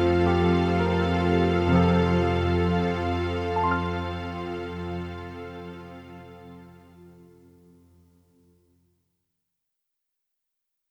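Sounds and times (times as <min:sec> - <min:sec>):
instrumental music: 0:00.0 - 0:08.3.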